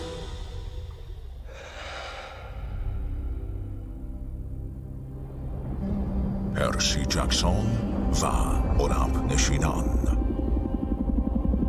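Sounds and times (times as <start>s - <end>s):
continuous low rumble: 0.0s - 11.6s
deep breathy rush of breath: 0.1s - 4.2s
speech: 6.6s - 10.1s.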